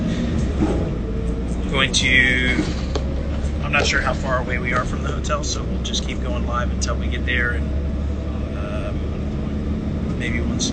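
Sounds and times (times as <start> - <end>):
moving tour bus engine and road drone travelling into Phoenix: 0.0 - 10.7
speech: 1.8 - 2.8, 3.7 - 7.8, 10.2 - 10.7.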